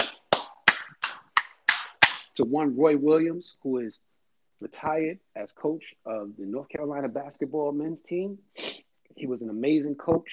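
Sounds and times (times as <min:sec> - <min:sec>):
single person clapping: 0:00.0 - 0:02.4
speech: 0:02.4 - 0:08.6, 0:09.2 - 0:10.3.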